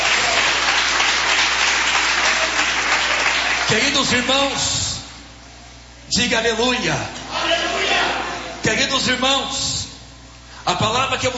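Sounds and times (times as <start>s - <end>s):
audience applause: 0.0s - 3.9s
speech: 3.7s - 4.8s, 6.1s - 7.9s, 8.7s - 9.7s, 10.6s - 11.3s.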